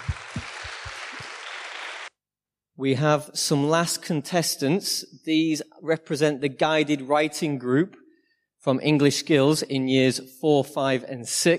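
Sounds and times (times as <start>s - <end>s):
audience applause: 0.0s - 2.1s
speech: 2.8s - 8.0s, 8.6s - 11.5s.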